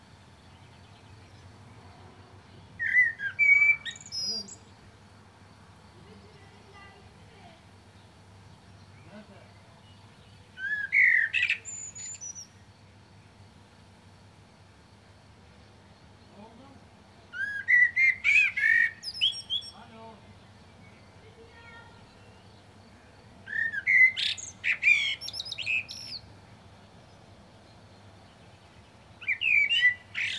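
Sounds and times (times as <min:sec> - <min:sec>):
Common blackbird singing: 0:02.8 - 0:04.7, 0:10.5 - 0:12.6, 0:17.3 - 0:19.9, 0:23.4 - 0:26.3, 0:29.2 - 0:30.3.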